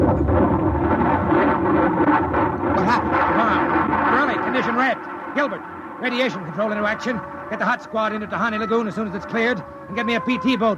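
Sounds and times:
bomb explosion rumble: 0.0 - 10.7
speech: 5.4 - 10.7.

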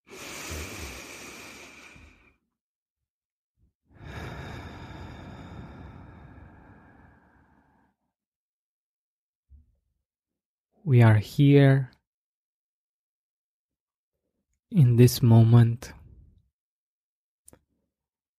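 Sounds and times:
deep breathing during a guided gratitude meditation: 0.0 - 2.4, 3.9 - 8.1
speech: 10.9 - 12.0, 14.7 - 16.0.

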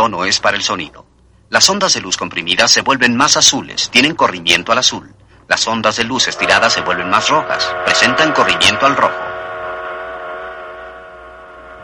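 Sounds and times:
speech: 0.0 - 9.3
rumbling noise: 6.0 - 11.8
passing train whistle: 6.2 - 11.8.

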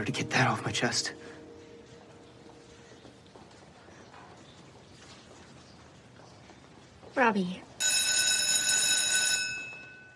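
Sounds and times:
speech: 0.0 - 1.4, 7.2 - 7.7
school bell ringing: 7.8 - 10.1.

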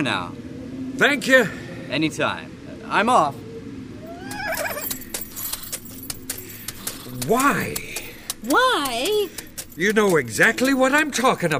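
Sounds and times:
speech: 0.0 - 0.4, 1.0 - 3.4, 7.1 - 11.5
horse pulling a buggy whinnying: 4.0 - 5.1
horse hooves clip-clopping: 4.2 - 11.5.

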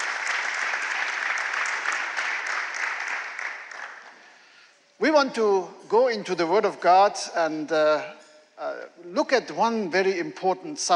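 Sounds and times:
church congregation applauding to welcome visitors during a service: 0.0 - 4.6
speech: 5.0 - 10.9.

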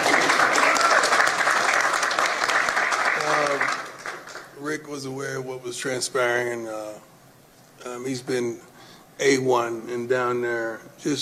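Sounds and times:
crowd applause: 0.0 - 4.6
speech: 5.0 - 7.1, 7.8 - 11.2.

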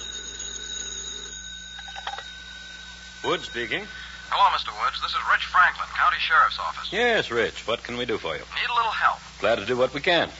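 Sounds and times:
telephone ringing: 0.0 - 6.9
speech: 3.2 - 10.3.

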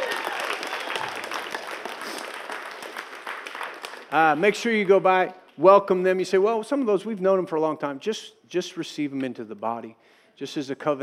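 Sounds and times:
congregation applauding new members at a church service: 0.0 - 5.6
speech: 4.1 - 11.0.

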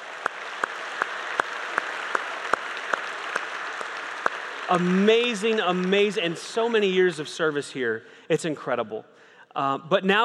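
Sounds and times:
applause: 0.0 - 7.6
speech: 4.7 - 10.2.

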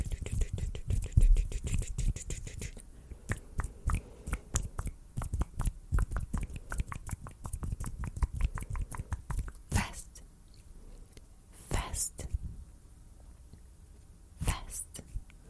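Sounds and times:
dense rapid hand tapping and rubbing: 0.0 - 9.8
finger snapping: 3.3 - 9.6.

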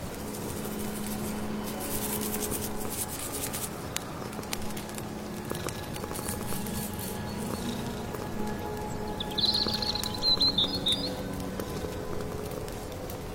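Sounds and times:
steady patter: 0.0 - 13.3
wood fire crackling: 0.0 - 13.3
birds chirping: 6.2 - 11.4.

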